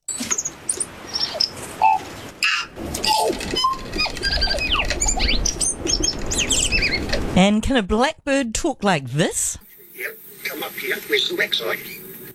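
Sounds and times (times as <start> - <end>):
New Zealand tui singing: 0.1 - 7.4
speech: 7.4 - 12.0.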